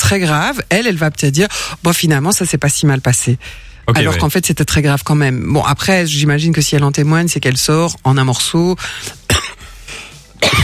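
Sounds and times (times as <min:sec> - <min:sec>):
speech: 0:00.1 - 0:09.3
person coughing while choking: 0:09.3 - 0:09.6, 0:10.4 - 0:10.6.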